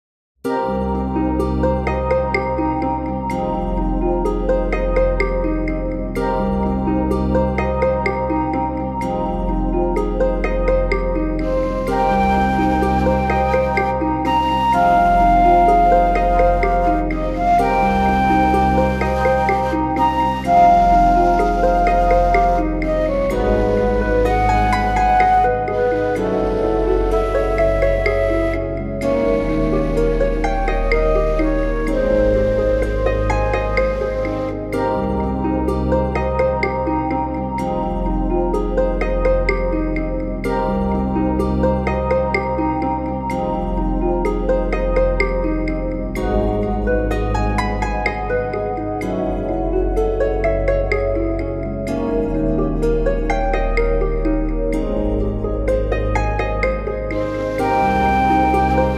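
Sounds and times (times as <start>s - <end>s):
fantastic forest background music: 0.5s - 58.9s.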